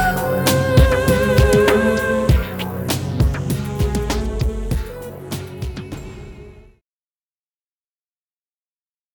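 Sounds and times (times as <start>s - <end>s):
theme music: 0.0s - 6.8s.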